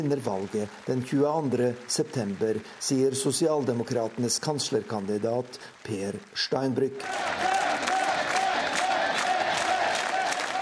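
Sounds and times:
speech: 0.0 - 7.9
crowd of supporters cheering and shouting: 7.0 - 10.6.

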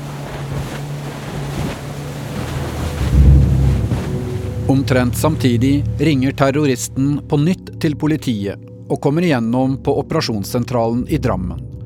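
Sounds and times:
water splashing: 0.0 - 8.7
motorboat engine drone speeding across open water: 0.0 - 11.8
wind buffeting: 1.2 - 7.8
speech: 4.7 - 11.7.

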